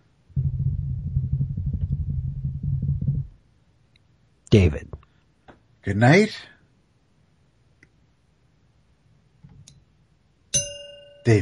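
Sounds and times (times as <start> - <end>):
faint low hum: 0.0 - 11.3
speech: 4.5 - 5.0, 5.8 - 6.5
glass clinking: 10.6 - 11.3.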